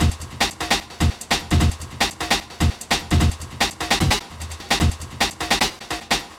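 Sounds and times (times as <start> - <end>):
drum: 0.0 - 6.3.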